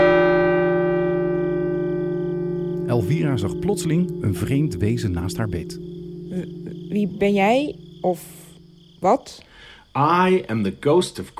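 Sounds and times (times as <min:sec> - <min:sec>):
clock striking one: 0:00.0 - 0:08.0
speech: 0:02.9 - 0:08.4, 0:09.0 - 0:11.3.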